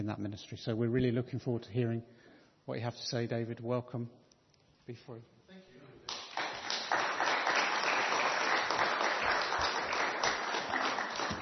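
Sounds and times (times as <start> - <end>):
speech: 0.0 - 4.2, 4.9 - 5.3
audience applause: 6.1 - 11.4.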